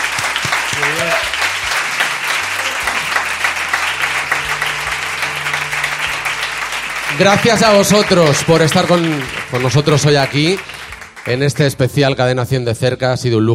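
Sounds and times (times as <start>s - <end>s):
audience applause: 0.0s - 11.9s
speech: 7.2s - 13.5s.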